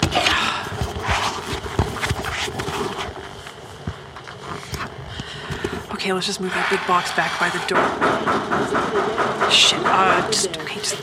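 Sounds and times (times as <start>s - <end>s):
footsteps of someone approaching: 0.0s - 11.0s
speech: 6.1s - 11.0s.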